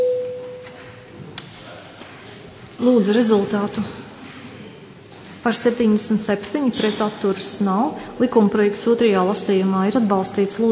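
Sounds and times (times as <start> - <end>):
parliament electronic voting-mode signal tone: 0.0 - 0.7
speech: 2.8 - 4.0, 5.5 - 10.7.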